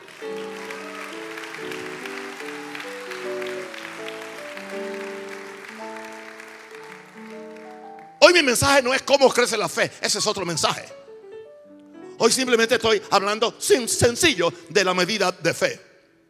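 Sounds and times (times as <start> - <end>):
audience applauding: 0.0 - 8.6
held keyboard chords: 0.0 - 9.3, 10.3 - 14.1
speech: 8.3 - 11.0, 12.2 - 15.9.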